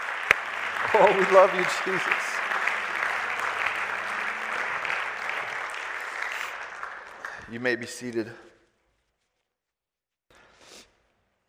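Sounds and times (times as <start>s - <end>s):
crowd clapping: 0.0s - 8.5s
speech: 1.0s - 2.4s, 7.5s - 8.5s.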